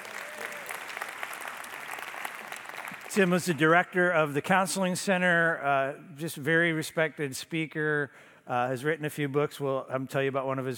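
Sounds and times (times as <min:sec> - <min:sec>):
crowd applause: 0:00.0 - 0:03.6
speech: 0:03.1 - 0:10.7.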